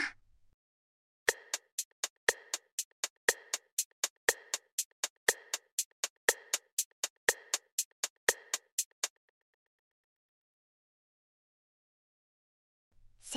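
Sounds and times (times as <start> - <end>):
quiz tones do mi so: 1.3 - 9.1.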